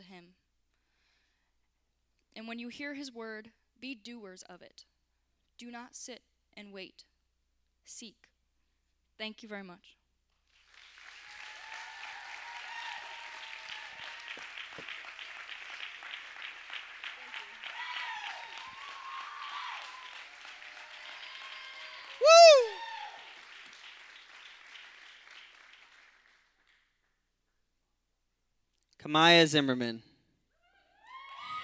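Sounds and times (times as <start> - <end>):
speech: 2.4 - 4.9, 5.6 - 7.1, 7.9 - 8.3, 9.2 - 10.0, 29.1 - 30.1
audience applause: 10.6 - 26.8
faint cheering voices: 17.2 - 23.2
loud downward-sliding whoop: 22.1 - 23.2, 31.0 - 31.6.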